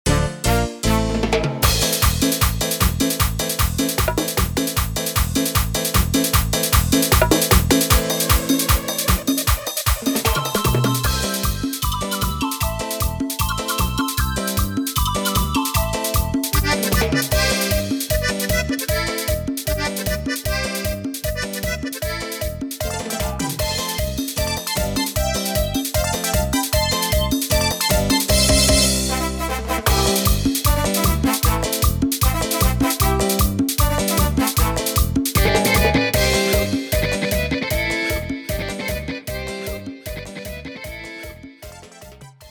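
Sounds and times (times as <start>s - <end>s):
instrumental track at 153 BPM: 0.1s - 42.5s.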